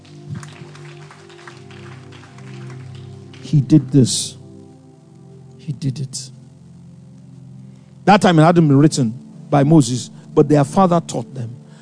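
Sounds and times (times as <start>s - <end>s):
audience clapping: 0.0s - 4.2s
speech: 3.5s - 4.4s, 5.7s - 6.4s, 8.1s - 11.5s.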